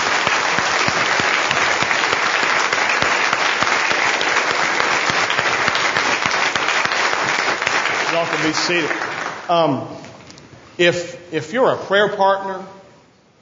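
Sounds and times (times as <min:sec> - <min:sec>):
crowd applause: 0:00.0 - 0:09.7
speech: 0:08.4 - 0:10.0, 0:10.8 - 0:12.8.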